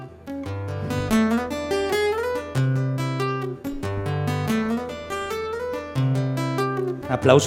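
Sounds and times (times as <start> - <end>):
rapid guitar tapping: 0.0 - 7.4
sustained low bass tones: 0.6 - 6.3.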